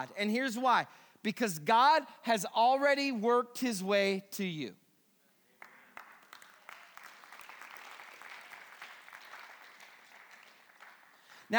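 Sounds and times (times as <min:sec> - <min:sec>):
speech: 0:00.0 - 0:04.8
audience clapping: 0:05.5 - 0:11.5.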